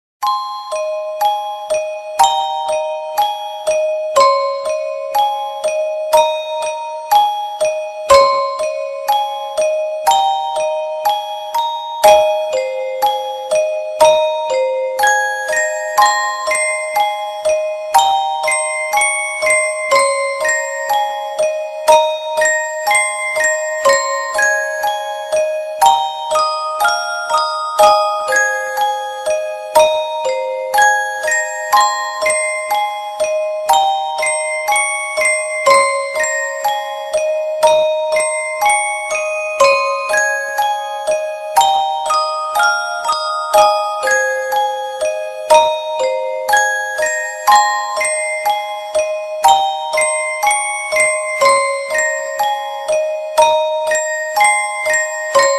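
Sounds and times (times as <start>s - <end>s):
music box melody: 0.2s - 55.5s.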